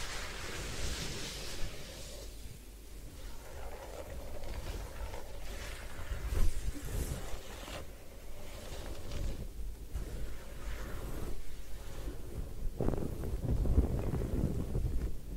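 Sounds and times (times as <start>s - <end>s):
head spa hair wash with massage rushing and rubbing: 0.0s - 15.2s.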